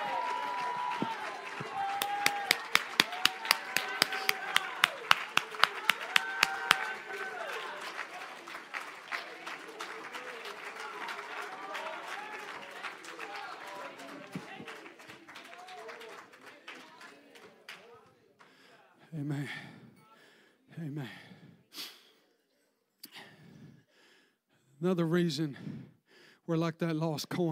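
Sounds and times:
audience clapping hands: 0:00.0 - 0:18.8
speech: 0:24.9 - 0:25.9, 0:26.5 - 0:27.5.

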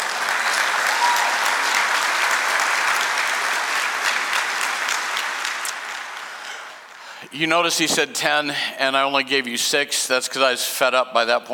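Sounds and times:
audience clapping and applauding: 0:00.0 - 0:07.2
speech: 0:07.3 - 0:11.5.

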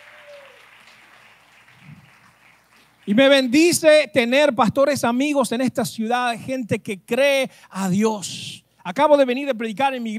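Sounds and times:
audience applause: 0:00.0 - 0:03.4
speech: 0:03.1 - 0:10.1.

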